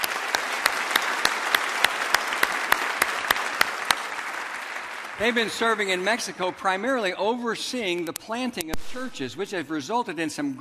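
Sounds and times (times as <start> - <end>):
congregation applause welcoming missionaries at a church service: 0.0 - 8.1
speech: 5.2 - 10.5.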